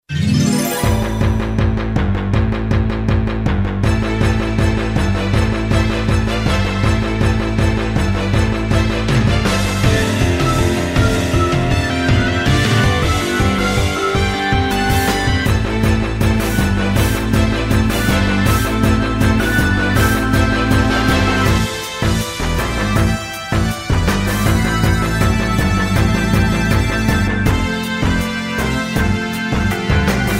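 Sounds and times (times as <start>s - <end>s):
PSX video game battle music tone: 0.0s - 30.3s.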